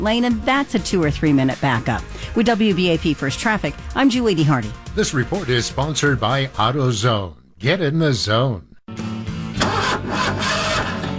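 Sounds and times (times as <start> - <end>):
speech: 0.0 - 8.7
car engine cranking slowly, starter grinding: 9.6 - 11.1.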